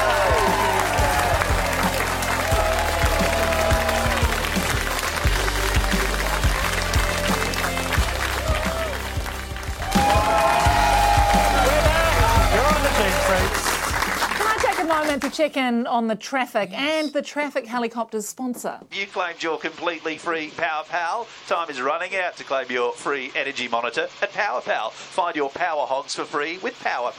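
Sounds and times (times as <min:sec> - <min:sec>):
audience applause: 0:00.0 - 0:15.4
speech: 0:15.3 - 0:27.1.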